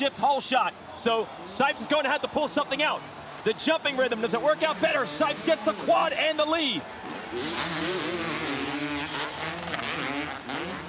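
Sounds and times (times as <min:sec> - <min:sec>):
speech: 0:00.0 - 0:08.3
two-stroke motocross bikes revving at full throttle: 0:03.8 - 0:10.8.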